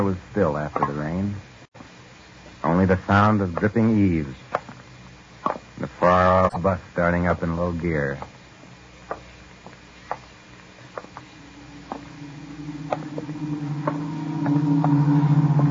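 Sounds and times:
speech: 0.0 - 1.5, 2.6 - 4.6, 5.8 - 8.3
Beaufort long-range fighter aircraft flying past: 11.4 - 15.6.

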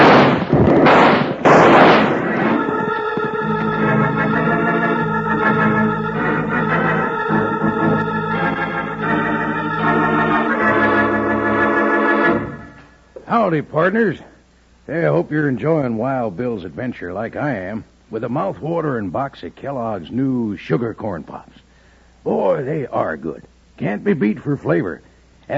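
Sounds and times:
rifle shots in a radio western drama: 0.0 - 2.9
music: 2.1 - 13.0
speech: 13.5 - 14.3, 14.9 - 21.6, 22.2 - 25.5.

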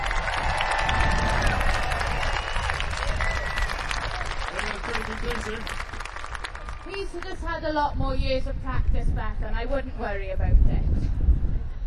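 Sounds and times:
audience applause: 0.0 - 7.4
speech: 7.6 - 11.2.

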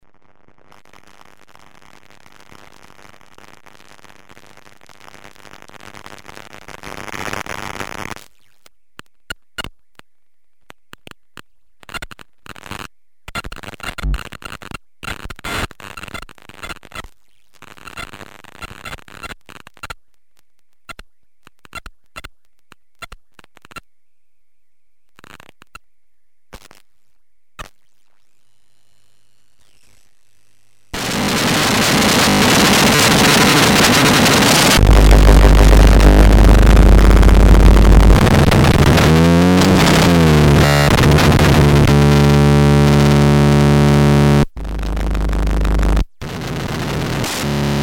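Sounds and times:
micronoise bass: 13.9 - 14.3, 31.0 - 47.8.

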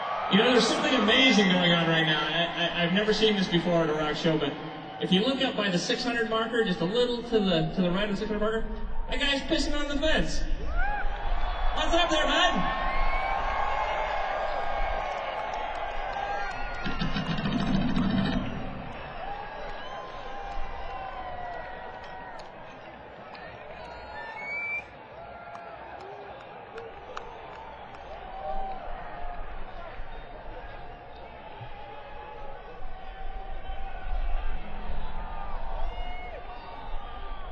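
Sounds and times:
rock concert crowd yelling: 0.0 - 37.5
speech: 0.3 - 10.5, 11.8 - 12.8
concert crowd whoops: 10.7 - 17.1, 18.9 - 22.6, 23.8 - 29.9, 32.5 - 37.5.

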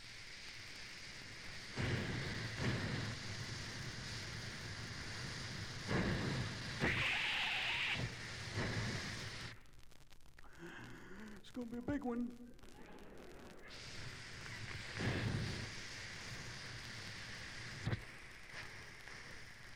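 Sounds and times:
old steam locomotive in a station: 0.0 - 9.5, 13.7 - 19.7
speech: 11.6 - 12.6.

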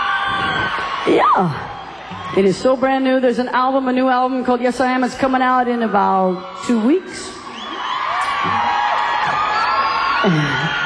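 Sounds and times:
small live crowd cheering and whooping: 0.0 - 2.5, 5.9 - 10.8
speech: 1.0 - 7.3, 10.2 - 10.8.

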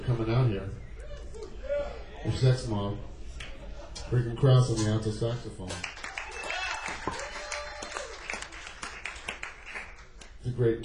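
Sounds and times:
speech: 0.1 - 0.9, 2.2 - 3.1, 4.1 - 6.0, 10.5 - 10.8
audience applause at a live jazz club: 5.8 - 10.3
person whooping: 6.2 - 8.2.

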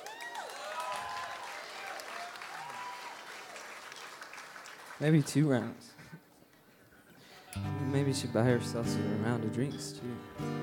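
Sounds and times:
audience applause: 0.0 - 5.6
speech: 5.0 - 6.0, 7.6 - 10.6.

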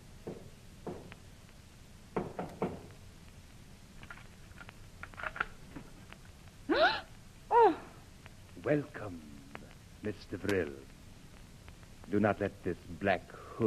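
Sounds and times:
knocking on a door: 0.2 - 1.1, 2.2 - 2.9
speech: 8.7 - 9.3, 10.0 - 10.9, 12.1 - 13.6.

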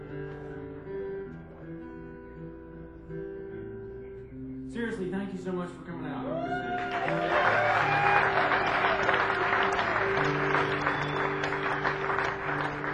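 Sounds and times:
speech: 4.7 - 7.6
crowd applauding: 6.4 - 12.9.

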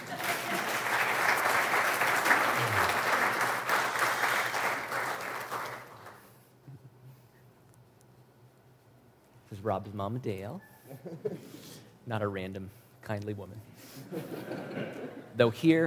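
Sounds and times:
murmured voices: 0.0 - 4.6
laughter: 0.0 - 6.1, 10.8 - 11.8, 13.8 - 15.4
audience applause: 0.0 - 6.3
speech: 9.6 - 15.8.

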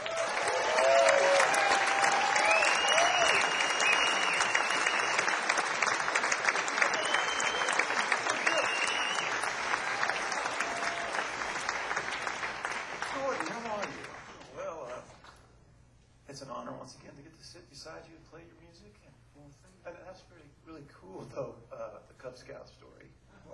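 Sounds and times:
whoops and cheers: 0.0 - 5.3, 6.7 - 11.5
audience clapping: 0.0 - 15.4.

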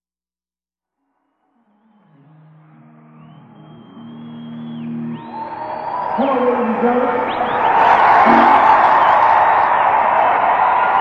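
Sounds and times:
audience round of applause: 3.2 - 10.9
whoop: 4.3 - 10.9
speech: 6.2 - 7.5.

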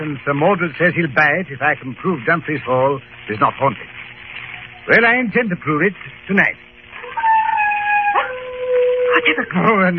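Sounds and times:
speech: 0.0 - 4.0, 4.8 - 6.7, 9.2 - 9.9
wild dogs baying and howling on a moor: 7.0 - 9.8.

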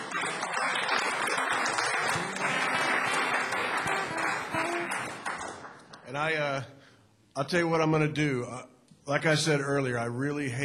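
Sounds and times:
warm round of applause: 0.0 - 6.1
speech: 7.4 - 10.6.

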